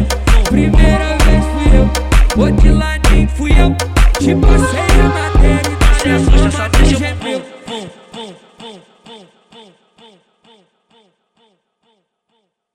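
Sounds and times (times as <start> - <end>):
electro funk music: 0.0 - 7.4.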